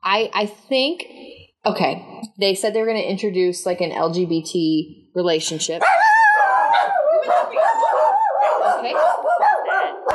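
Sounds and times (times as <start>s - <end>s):
speech: 0.1s - 6.1s, 7.2s - 9.6s
three dogs barking at someone at the door: 5.8s - 10.1s.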